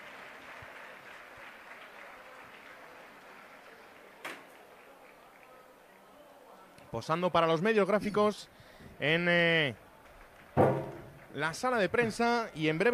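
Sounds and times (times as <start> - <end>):
CD Leganés fans applauding in an ovation: 0.0 - 6.0, 9.8 - 11.9
speech: 6.9 - 9.8, 11.4 - 12.9
sharp knock: 10.6 - 11.2.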